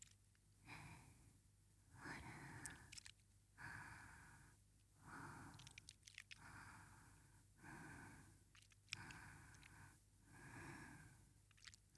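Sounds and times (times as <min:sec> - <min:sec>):
breathing: 0:00.6 - 0:01.3, 0:02.0 - 0:03.0, 0:03.6 - 0:05.8, 0:06.4 - 0:11.3.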